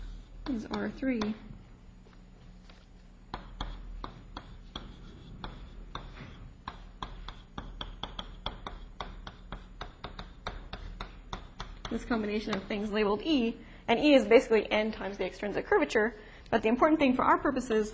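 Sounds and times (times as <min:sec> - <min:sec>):
speech: 0:00.5 - 0:01.5, 0:12.1 - 0:17.9
handwriting of an equation during a physics lecture: 0:02.6 - 0:13.1.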